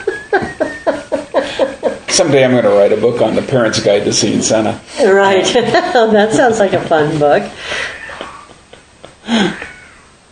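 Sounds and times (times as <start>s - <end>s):
laughter: 0.0s - 2.5s, 5.4s - 6.8s, 8.0s - 9.9s
speech: 2.1s - 8.0s, 9.3s - 9.7s
cat yowling: 7.8s - 8.6s, 9.4s - 10.2s.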